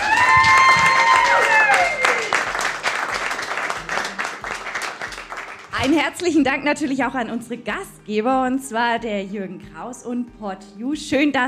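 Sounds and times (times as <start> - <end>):
live audience applause: 0.0 - 6.0
speech: 5.9 - 11.4.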